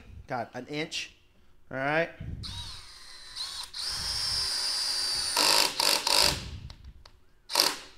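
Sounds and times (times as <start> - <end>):
speech: 0.3 - 2.7
power drill driving a screw into Douglas fir lumber: 2.4 - 6.4, 7.5 - 7.9.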